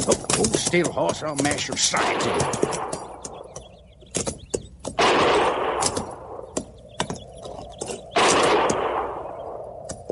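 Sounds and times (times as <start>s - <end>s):
speech: 0.0s - 3.0s
gunfire from low hills: 1.4s - 3.4s, 5.0s - 6.6s, 8.1s - 9.6s.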